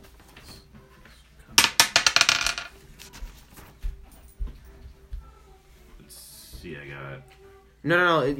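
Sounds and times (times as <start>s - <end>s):
d20 die rolling: 1.6s - 2.7s
speech: 6.6s - 8.3s.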